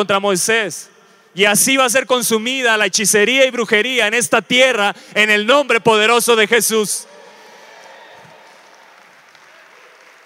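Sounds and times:
speech: 0.0s - 7.2s
crowd applause: 7.2s - 10.2s.

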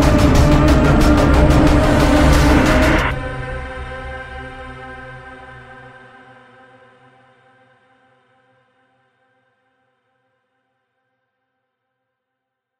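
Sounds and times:
horror music: 0.0s - 6.3s.

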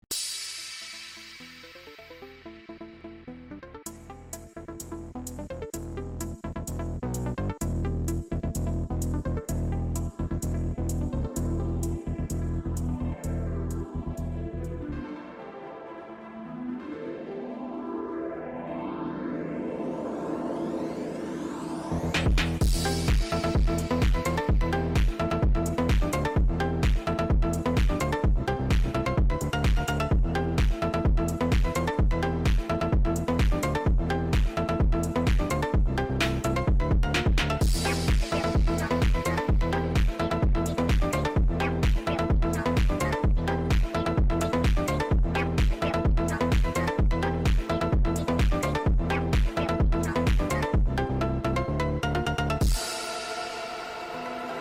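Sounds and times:
clubstep phonk remix music: 0.1s - 15.4s, 16.1s - 54.5s.

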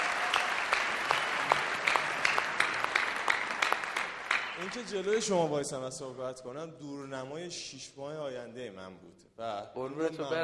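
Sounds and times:
audience applause for a speaker's host: 0.0s - 5.3s
speech: 4.7s - 10.4s.

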